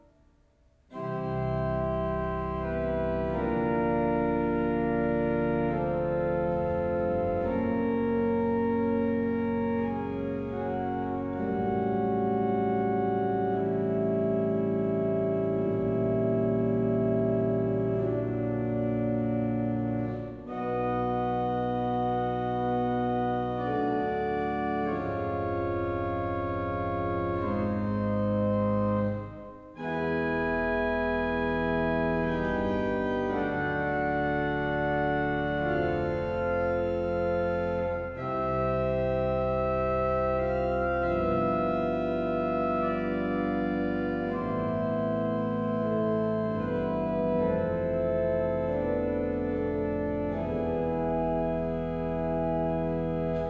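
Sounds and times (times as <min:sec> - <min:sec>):
organ prelude in C: 0:00.9 - 0:53.4.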